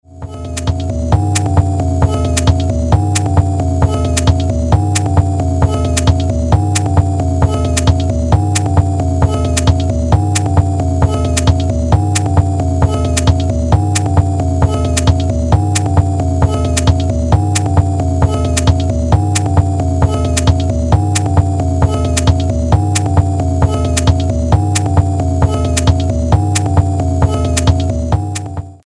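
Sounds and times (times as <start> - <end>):
music loop: 0.0 - 28.8.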